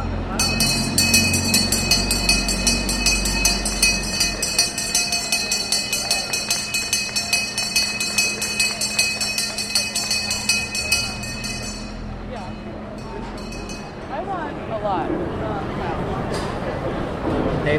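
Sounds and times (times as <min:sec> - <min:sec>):
bell rung to open a market: 0:00.0 - 0:14.2
murmuring voices: 0:00.0 - 0:17.4.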